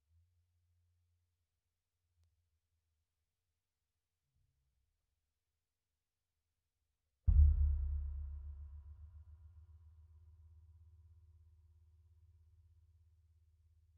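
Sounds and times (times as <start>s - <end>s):
sub bass: 7.3s - 9.1s.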